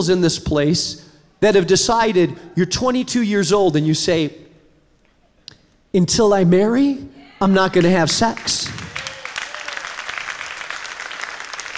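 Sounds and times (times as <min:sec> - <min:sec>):
speech: 0:00.0 - 0:04.4, 0:05.9 - 0:08.9
audience clapping: 0:07.7 - 0:11.7.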